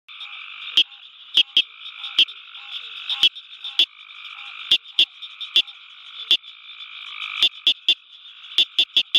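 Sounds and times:
Southern cricket frog calling with sharp high clicks: 0.1 - 9.1.

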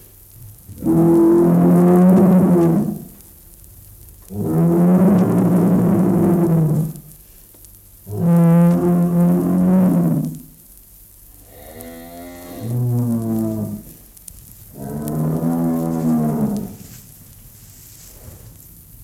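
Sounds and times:
bull bellowing a long deep moo: 0.8 - 3.1, 4.3 - 7.0, 8.1 - 10.4, 11.4 - 13.9, 14.7 - 16.9.

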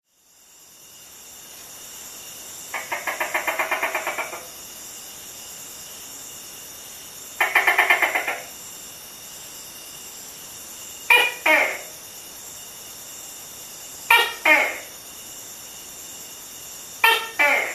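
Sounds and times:
male Tokay gecko Gekko gecko mating call: 2.7 - 4.5, 7.4 - 8.5, 11.1 - 12.0, 14.1 - 15.0, 17.0 - 17.7.

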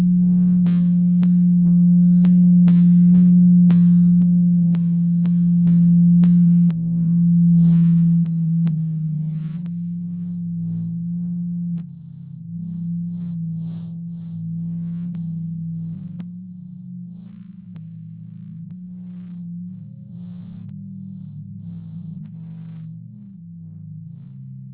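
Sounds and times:
blue whale deep low hum in the Atlantic: 0.0 - 24.7.

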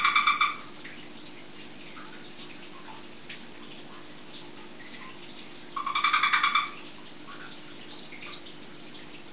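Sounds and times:
red-eyed tree frog mating call: 0.0 - 2.9, 3.8 - 7.6.

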